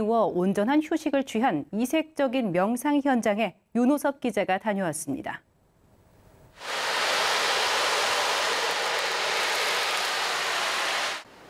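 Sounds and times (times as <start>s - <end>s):
speech: 0.0s - 5.5s
summer sea waves: 6.6s - 11.4s.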